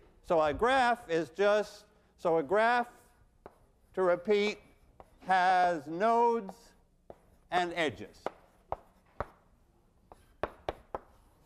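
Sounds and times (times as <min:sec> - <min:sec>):
speech: 0:00.3 - 0:03.0, 0:04.0 - 0:04.6, 0:05.2 - 0:06.7, 0:07.5 - 0:08.4
chalk tapping and scratching on a blackboard: 0:03.3 - 0:11.4.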